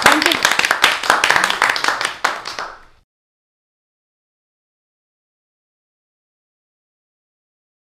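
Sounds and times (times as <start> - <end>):
audience applause: 0.0 - 2.9.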